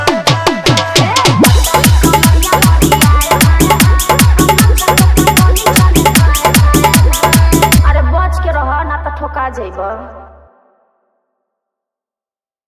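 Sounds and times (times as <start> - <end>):
dholak bass dance mix: 0.0 - 10.0.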